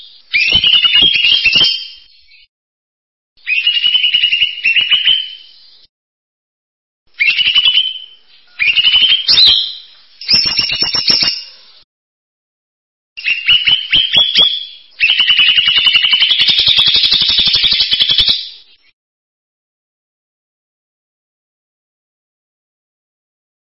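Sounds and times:
bird song in buzzy trilled phrases: 0.0 - 2.5, 3.4 - 5.9, 7.1 - 11.8, 13.2 - 19.0.

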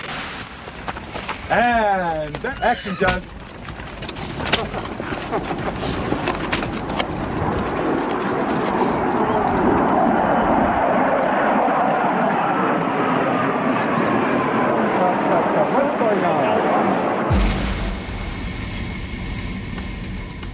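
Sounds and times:
military aircraft jet roar overhead: 0.0 - 20.5
speech: 1.5 - 3.4, 4.7 - 6.2.

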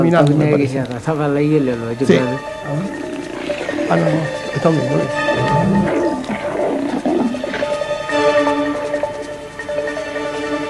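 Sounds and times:
speech: 0.0 - 3.1, 3.9 - 5.9
laughter: 0.0 - 10.6
lions roaring: 0.0 - 10.6.

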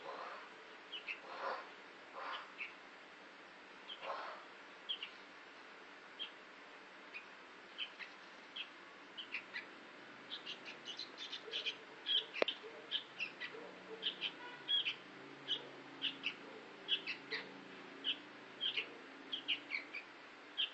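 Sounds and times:
sooty-headed bulbul singing chattering phrases: 0.0 - 2.8, 3.9 - 5.2, 6.2 - 6.4, 7.1 - 20.7.

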